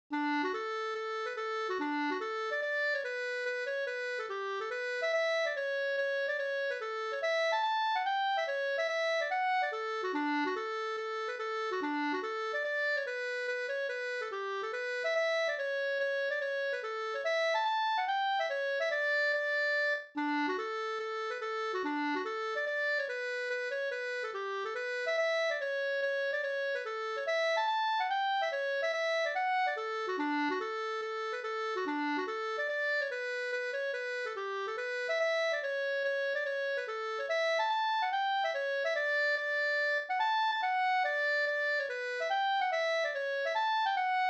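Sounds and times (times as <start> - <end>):
mazurka: 0.1 - 44.2.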